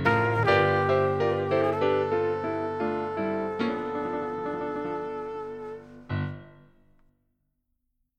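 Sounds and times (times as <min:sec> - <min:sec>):
nursery rhyme melody: 0:00.0 - 0:06.0.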